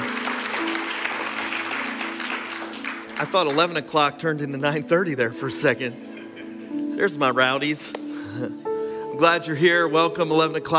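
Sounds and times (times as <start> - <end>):
audience clapping: 0.0 - 4.0
speech: 3.2 - 6.0, 7.0 - 8.6, 9.2 - 10.7.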